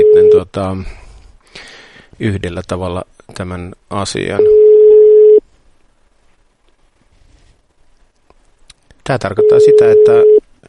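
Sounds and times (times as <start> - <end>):
telephone busy signal: 0.0 - 0.4, 4.4 - 5.4, 9.4 - 10.4
speech: 0.4 - 4.7, 9.1 - 10.3.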